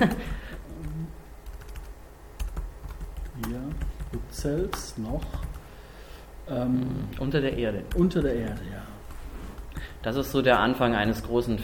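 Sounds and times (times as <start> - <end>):
speech: 0.0 - 0.3, 4.4 - 5.6, 6.5 - 8.9, 10.0 - 11.6
fingers typing on a computer keyboard: 0.1 - 5.6, 7.5 - 8.7.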